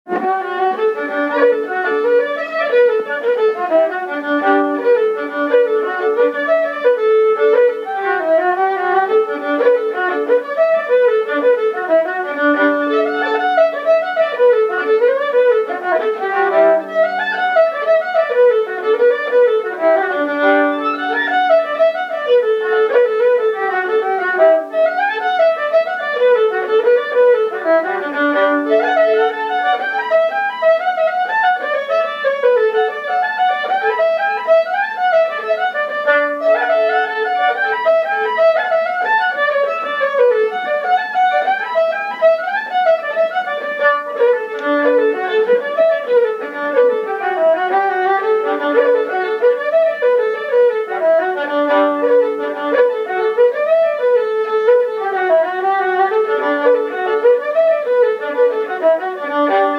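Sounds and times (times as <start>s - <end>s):
jig tune: 0.1s - 59.7s.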